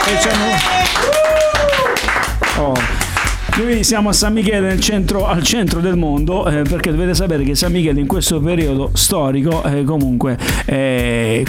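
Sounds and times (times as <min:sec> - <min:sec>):
high whoop: 0:00.0 - 0:02.1
small group clapping: 0:00.0 - 0:03.9
speech: 0:00.1 - 0:01.3, 0:03.6 - 0:11.4.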